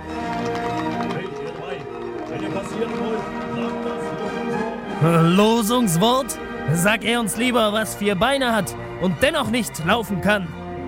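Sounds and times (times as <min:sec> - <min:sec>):
horses galloping as musketeers ride: 0:00.0 - 0:04.0
speech: 0:05.0 - 0:10.6.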